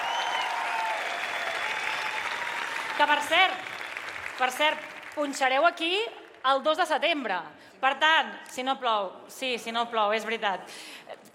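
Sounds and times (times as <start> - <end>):
audience applause for two DJs at a town festival in Penedès: 0.0 - 5.2
speech: 3.0 - 3.7, 4.4 - 11.2.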